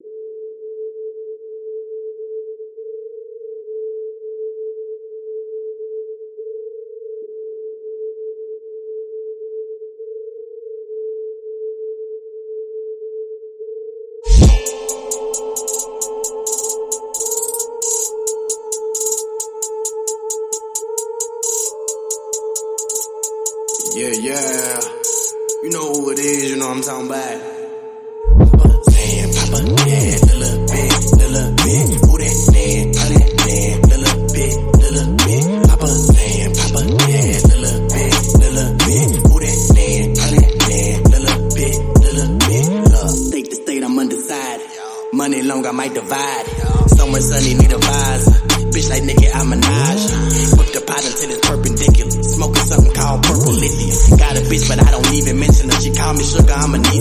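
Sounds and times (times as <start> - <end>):
hip hop rap remix: 14.2 - 56.9.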